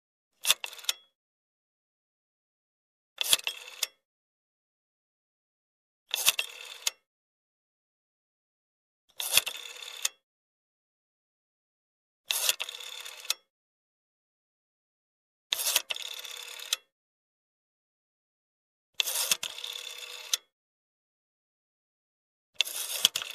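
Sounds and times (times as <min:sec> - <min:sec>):
telephone: 0:00.4 - 0:01.2, 0:03.2 - 0:04.0, 0:06.1 - 0:07.1, 0:09.1 - 0:10.2, 0:12.3 - 0:13.5, 0:15.5 - 0:16.9, 0:19.0 - 0:20.5, 0:22.6 - 0:23.3.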